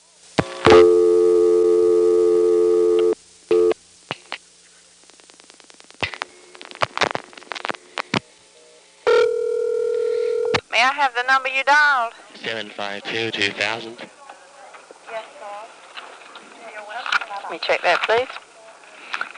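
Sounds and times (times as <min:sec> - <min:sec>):
telephone line buzzing tone on a call routed to operator intercept: 0:00.4 - 0:03.8, 0:09.1 - 0:10.6
speech: 0:10.9 - 0:14.1, 0:17.5 - 0:18.4.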